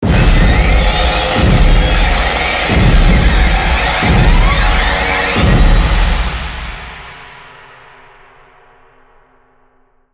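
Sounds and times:
large musical sting: 0.1s - 7.2s.

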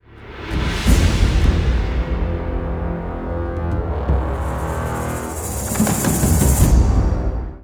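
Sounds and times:
tension music jingle: 1.5s - 7.4s.

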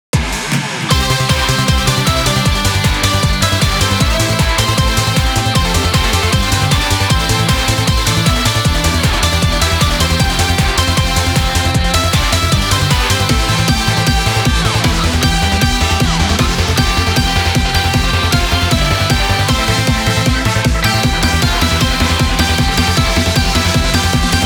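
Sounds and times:
happy instrumental music: 0.8s - 24.4s.

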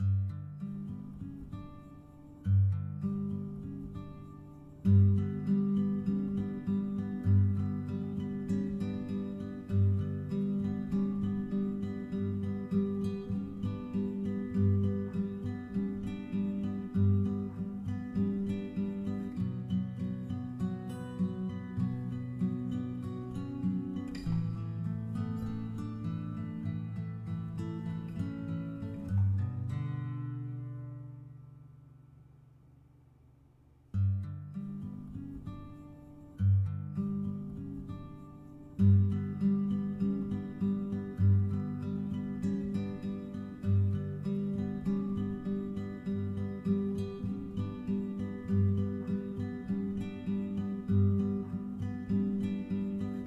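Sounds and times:
menu music guitars stem: 0.0s - 32.5s, 33.9s - 53.2s.

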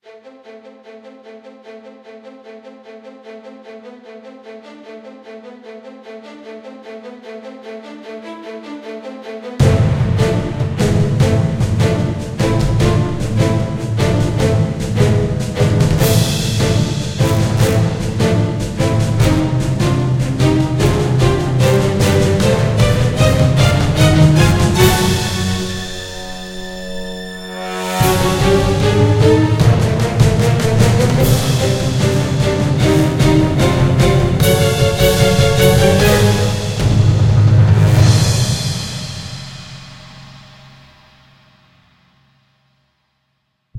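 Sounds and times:
intro music: 9.6s - 40.8s.

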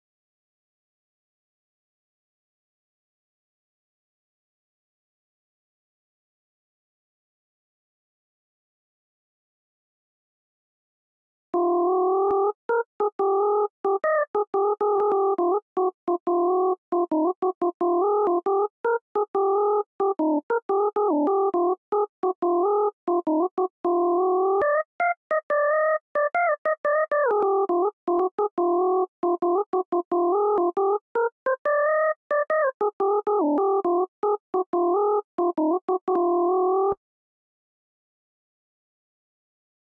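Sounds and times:
melody: 11.6s - 37.0s.

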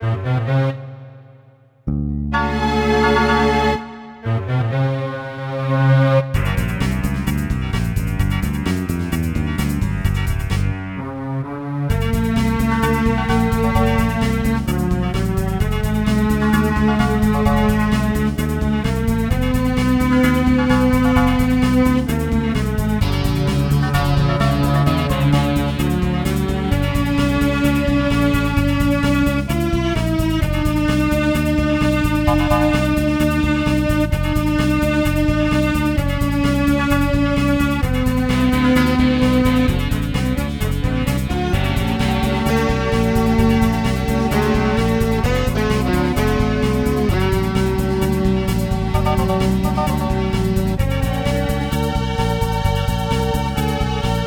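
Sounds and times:
background music: 0.0s - 54.2s.

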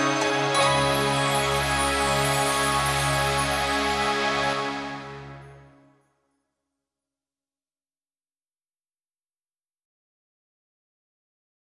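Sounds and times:
instrumental music: 0.0s - 5.8s.

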